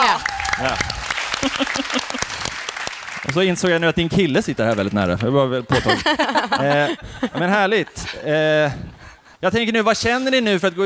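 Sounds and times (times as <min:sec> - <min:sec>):
applause: 0:00.0 - 0:04.2
speech: 0:00.6 - 0:02.6, 0:03.2 - 0:10.8
laughter: 0:01.2 - 0:02.6, 0:05.7 - 0:09.3.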